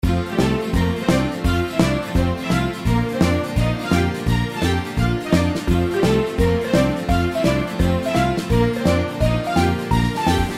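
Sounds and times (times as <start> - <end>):
outro background music: 0.0 - 10.5.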